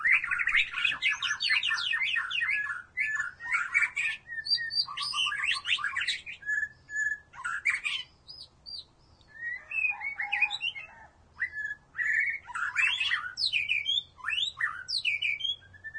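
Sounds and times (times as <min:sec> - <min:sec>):
white-rumped shama song with trills, clicks and whistles: 0:00.0 - 0:15.9.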